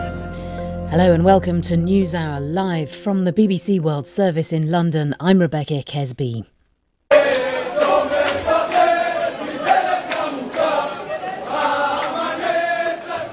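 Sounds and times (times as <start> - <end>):
speech: 0.9 - 6.6
jubilant crowd singing and cheering at Ben Gurion Airport in Tel Aviv: 7.1 - 13.3
sharp shouts or claps: 7.2 - 10.8.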